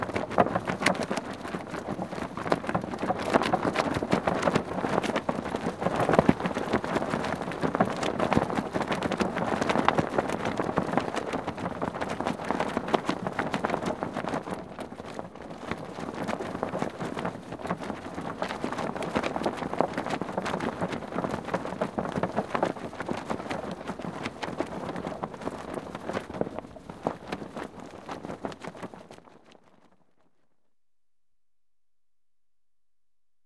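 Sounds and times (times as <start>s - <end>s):
sailing dinghy sail flapping: 0.0s - 30.2s.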